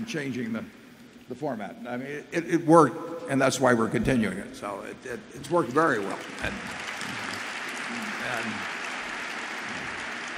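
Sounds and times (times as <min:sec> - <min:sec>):
speech: 0:00.0 - 0:06.8, 0:08.2 - 0:08.8
audience applause: 0:05.9 - 0:10.3.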